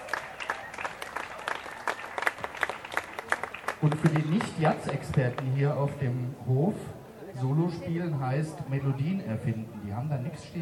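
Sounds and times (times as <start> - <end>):
audience applause: 0.0 - 5.5
speech: 3.8 - 10.6.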